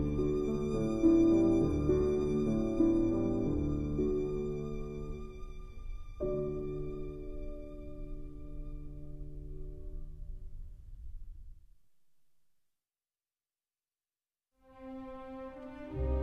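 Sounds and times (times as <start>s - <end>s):
violin: 0.0s - 9.6s, 14.7s - 16.2s
piano: 0.0s - 11.9s, 14.6s - 16.2s.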